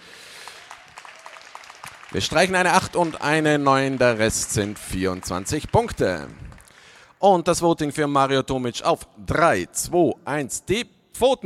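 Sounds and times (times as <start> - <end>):
audience applause: 0.0 - 7.0
speech: 2.1 - 6.4, 7.2 - 11.4.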